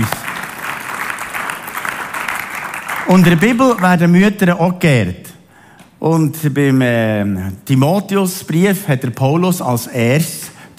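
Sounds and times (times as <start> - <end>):
audience applause: 0.0 - 4.0
speech: 3.1 - 5.2, 6.0 - 10.7.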